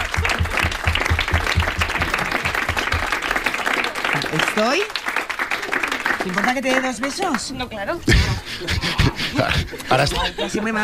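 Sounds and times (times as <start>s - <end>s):
audience applause: 0.0s - 7.5s
speech: 4.6s - 5.0s, 6.2s - 10.8s
laughter: 8.0s - 10.8s.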